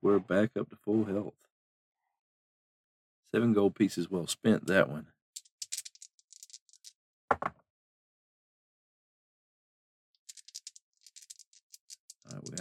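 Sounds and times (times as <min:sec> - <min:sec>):
speech: 0:00.1 - 0:01.4, 0:03.3 - 0:05.2
dice rattling in a cup or hand: 0:05.4 - 0:07.0, 0:10.2 - 0:12.6.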